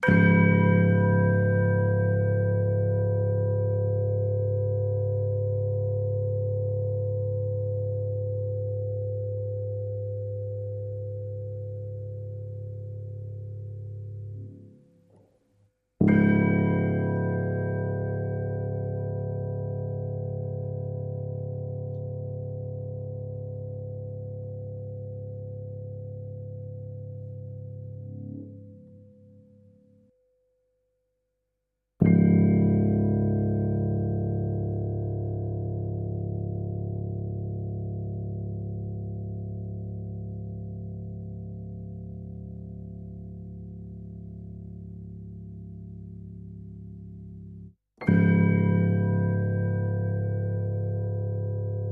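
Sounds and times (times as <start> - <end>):
bells: 0.0 - 5.6, 16.0 - 21.5, 48.0 - 51.9
piano: 0.0 - 15.4, 16.0 - 29.8, 32.0 - 51.9.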